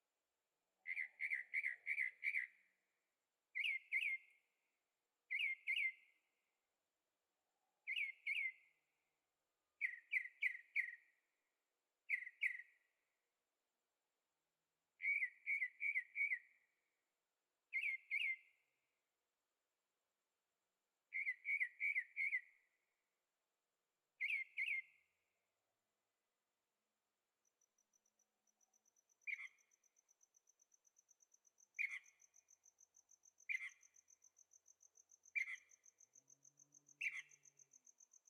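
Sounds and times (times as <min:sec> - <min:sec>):
whistled bird song: 0:00.8 - 0:02.9, 0:03.5 - 0:04.6, 0:05.3 - 0:06.4, 0:07.8 - 0:09.0, 0:09.8 - 0:11.4, 0:12.0 - 0:13.0, 0:15.0 - 0:16.9, 0:17.7 - 0:18.9, 0:21.1 - 0:23.0, 0:24.2 - 0:25.4, 0:27.4 - 0:38.2.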